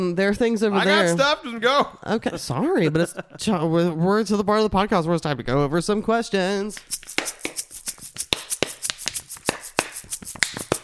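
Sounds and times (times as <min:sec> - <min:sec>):
speech: 0:00.0 - 0:07.5
plastic water bottle squeezed, crinkling: 0:06.8 - 0:10.8.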